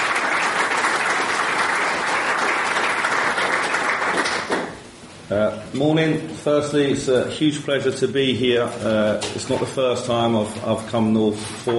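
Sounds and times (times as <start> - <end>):
audience applause welcoming a speaker to the stage: 0.0 - 4.8
speech: 5.3 - 11.7.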